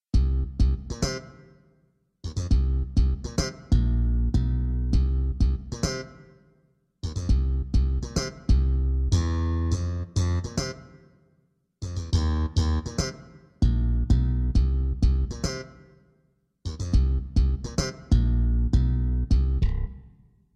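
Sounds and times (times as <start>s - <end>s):
slap bass: 0.1s - 1.2s, 2.2s - 6.1s, 7.0s - 10.8s, 11.8s - 15.7s, 16.7s - 20.1s.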